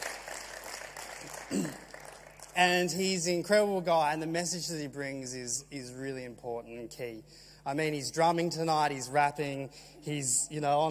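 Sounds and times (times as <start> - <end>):
crowd applause: 0.0 - 2.6
speech: 1.5 - 1.8, 2.6 - 10.8.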